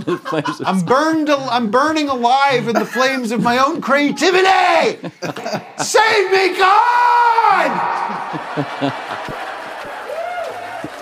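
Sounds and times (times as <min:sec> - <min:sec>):
laughter: 0:00.0 - 0:01.2, 0:02.5 - 0:03.8, 0:04.8 - 0:06.7, 0:07.4 - 0:11.0
speech: 0:00.0 - 0:09.4
small room crowd cheering and hollering: 0:05.6 - 0:11.0
whoop: 0:07.5 - 0:11.0.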